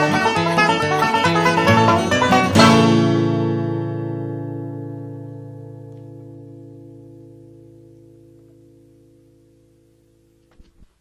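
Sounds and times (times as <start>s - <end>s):
bluegrass hornpipe tune: 0.0s - 5.0s.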